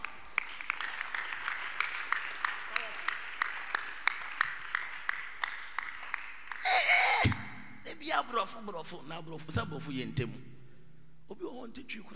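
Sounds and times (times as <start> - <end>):
audience clapping: 0.0 - 7.4
speech: 8.6 - 10.5, 11.7 - 12.1.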